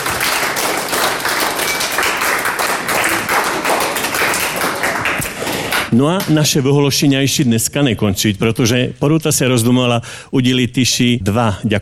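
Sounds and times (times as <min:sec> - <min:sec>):
audience applause: 0:00.0 - 0:05.9
speech: 0:05.9 - 0:11.8.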